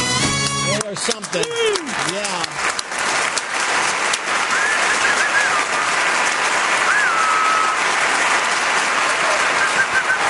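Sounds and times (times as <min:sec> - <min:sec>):
audience applause: 0:00.2 - 0:10.2
speech: 0:00.9 - 0:02.7
thin high whistles: 0:04.5 - 0:05.8, 0:06.9 - 0:07.8.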